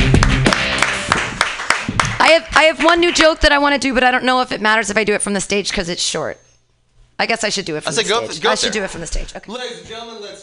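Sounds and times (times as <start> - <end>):
audience clapping: 0.0 - 3.6
speech: 2.4 - 6.5, 7.2 - 10.4.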